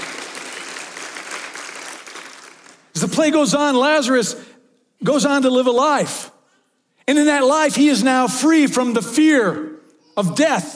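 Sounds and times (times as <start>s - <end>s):
audience clapping: 0.0s - 3.1s
speech: 3.0s - 6.4s, 7.1s - 10.7s.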